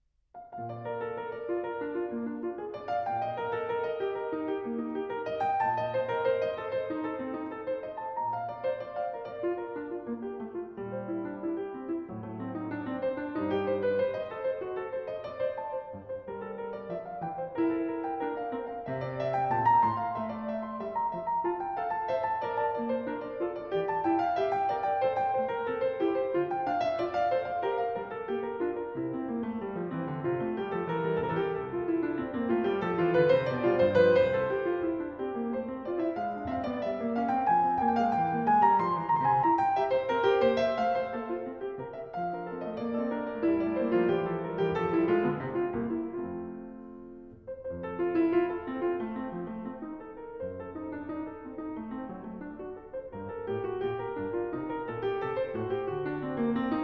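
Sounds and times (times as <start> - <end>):
baroque keyboard dance movement: 0.4 - 56.8.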